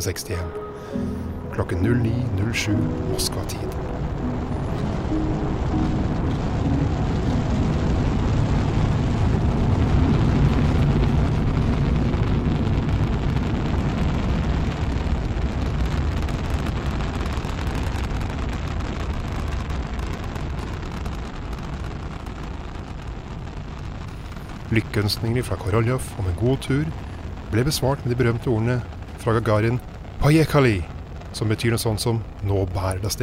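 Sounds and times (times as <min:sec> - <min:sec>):
speech: 0:00.0 - 0:06.0, 0:25.0 - 0:33.2
Vostok 1 rocket lift-off from Baikonur Cosmodrome: 0:00.0 - 0:33.2.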